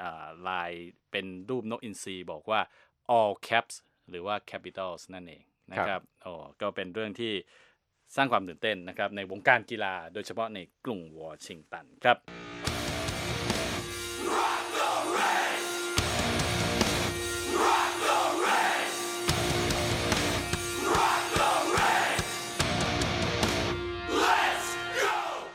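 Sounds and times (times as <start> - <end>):
speech: 0.4 - 12.8
crowd yelling and roaring: 12.8 - 25.5
large crowd of hockey fans chanting a cheer song: 13.9 - 22.8, 24.0 - 25.5.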